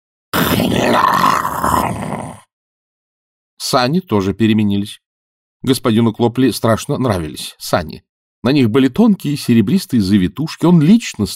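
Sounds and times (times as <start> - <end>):
pig grunting: 0.4 - 2.4
speech: 3.7 - 5.0, 5.6 - 11.3.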